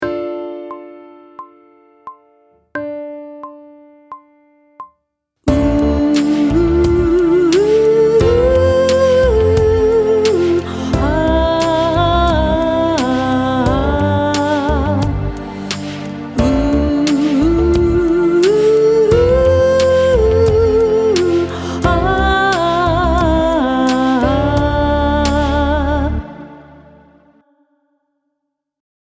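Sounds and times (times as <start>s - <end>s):
person sight singing pop vocals: 5.5s - 27.6s.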